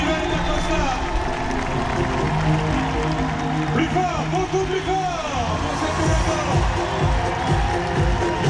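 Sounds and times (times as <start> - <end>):
crowd ovation and applause at the Trocadéro: 0.0 - 8.4.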